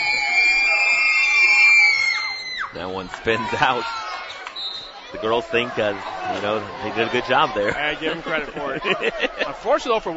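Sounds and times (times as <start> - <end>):
loud crowd noise during basketball free throw: 0.0 - 10.1
speech: 2.8 - 4.3, 5.1 - 10.1
laughter: 6.3 - 10.1.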